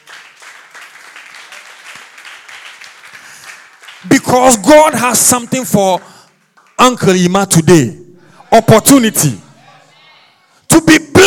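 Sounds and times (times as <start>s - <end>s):
audience clapping: 0.0s - 7.2s
speech: 4.0s - 6.1s, 6.8s - 9.4s, 10.8s - 11.1s.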